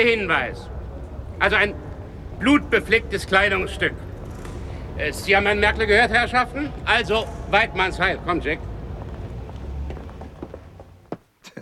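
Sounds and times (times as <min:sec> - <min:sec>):
speech: 0:00.0 - 0:00.8, 0:01.4 - 0:04.1, 0:05.0 - 0:08.7
group of people running off: 0:08.2 - 0:11.3.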